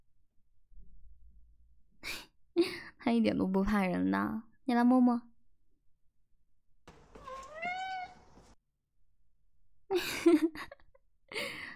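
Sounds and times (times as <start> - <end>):
speech: 2.6 - 5.3
white-furred, blue-eyed Maine Coon cat meowing: 7.2 - 8.3.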